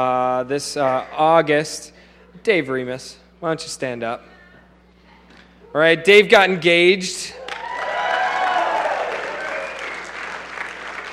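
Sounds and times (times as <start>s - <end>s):
speech: 0.0s - 4.3s, 5.7s - 7.4s
audience clapping: 7.4s - 11.1s.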